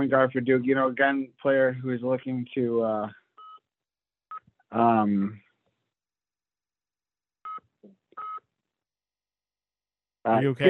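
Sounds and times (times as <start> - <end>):
speech: 0.0 - 3.2, 4.7 - 5.4, 10.2 - 10.6
mobile phone electronic beep tones: 3.4 - 3.6, 8.2 - 8.4
brief voice: 10.4 - 10.6.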